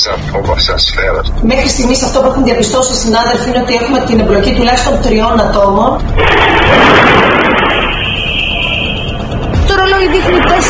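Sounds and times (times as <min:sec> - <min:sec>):
speech: 0:00.0 - 0:07.3, 0:09.8 - 0:10.6
explosion of improvised incendiary device at an apartment building entrance: 0:06.1 - 0:09.5.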